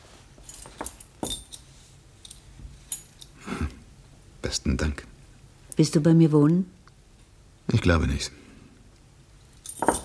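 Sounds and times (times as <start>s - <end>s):
keys clinking as passed from hand to hand: 0.4s - 3.4s, 9.5s - 10.0s
speech: 4.5s - 5.1s, 5.8s - 6.8s, 7.7s - 8.4s.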